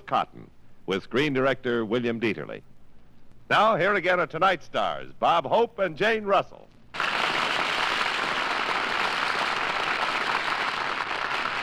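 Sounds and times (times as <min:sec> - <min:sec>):
speech: 0:00.1 - 0:02.7, 0:03.5 - 0:07.0
audience applause: 0:07.0 - 0:11.6.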